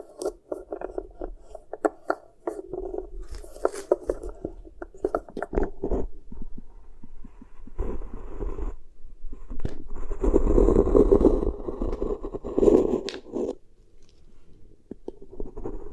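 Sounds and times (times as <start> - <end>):
beeswax pressed and worked over the ear crackling: 0.0 - 6.6, 9.6 - 15.9.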